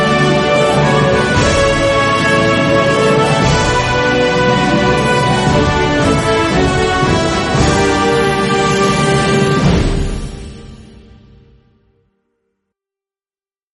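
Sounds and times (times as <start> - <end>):
instrumental national anthem: 0.0 - 10.3.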